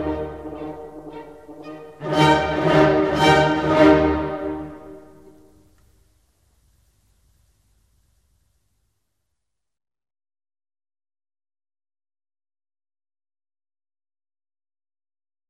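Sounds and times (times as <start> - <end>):
horn concerto in E flat: 0.0 - 5.6.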